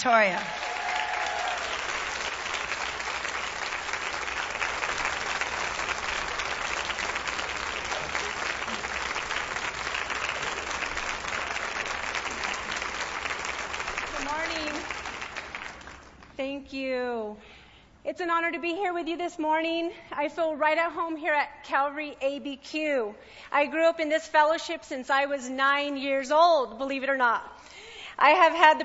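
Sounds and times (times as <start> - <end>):
speech: 0.0 - 0.7, 16.4 - 27.6, 28.2 - 28.8
church audience applause welcoming a speaker: 0.0 - 16.3.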